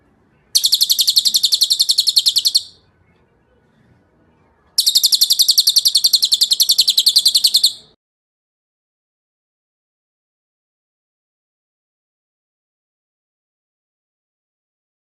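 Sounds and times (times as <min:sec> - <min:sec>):
bird trilling: 0:00.6 - 0:02.8, 0:04.8 - 0:07.9.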